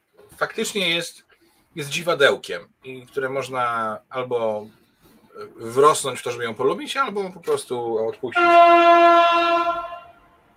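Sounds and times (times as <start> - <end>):
speech: 0.4 - 4.8, 5.4 - 9.9
train horn by the railway tracks near a home: 8.4 - 10.4.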